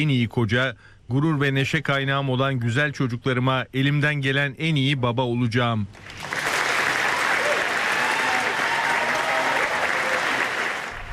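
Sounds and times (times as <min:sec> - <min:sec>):
speech: 0:00.0 - 0:06.4
large audience applauding: 0:06.0 - 0:11.1.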